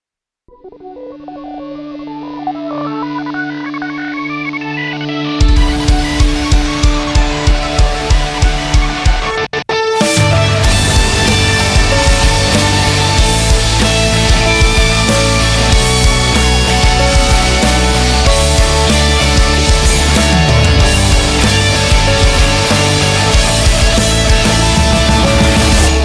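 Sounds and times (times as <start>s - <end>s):
instrumental music: 0.5s - 26.0s.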